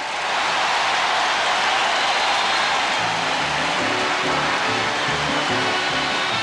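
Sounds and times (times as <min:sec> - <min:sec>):
large convention crowd applause: 0:00.0 - 0:06.4
convention crowd voices: 0:02.7 - 0:06.4.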